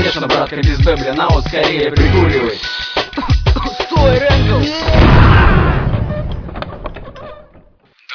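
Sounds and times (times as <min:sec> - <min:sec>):
speech: 0:00.1 - 0:02.8, 0:04.0 - 0:05.0
loud deep explosion: 0:04.8 - 0:07.2
clattering scattered noise: 0:05.0 - 0:07.8.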